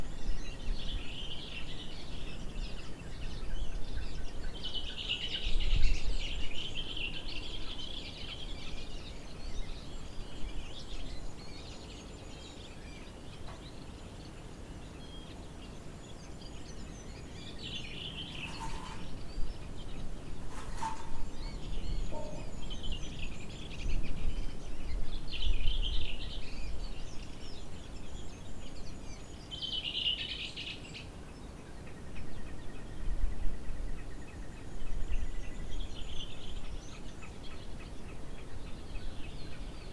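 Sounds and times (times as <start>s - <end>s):
birds at a cabin porch: 0.0s - 39.9s.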